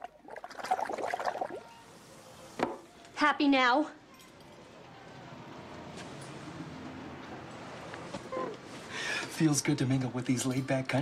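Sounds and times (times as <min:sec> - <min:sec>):
air blown through a straw into a cup of cola: 0:00.0 - 0:01.6
speech: 0:03.2 - 0:04.0, 0:09.4 - 0:11.0.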